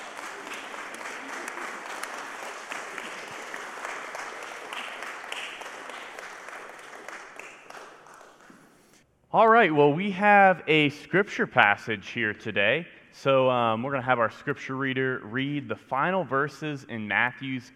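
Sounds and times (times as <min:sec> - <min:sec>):
audience applause after prayer: 0:00.0 - 0:08.9
speech: 0:09.4 - 0:17.7.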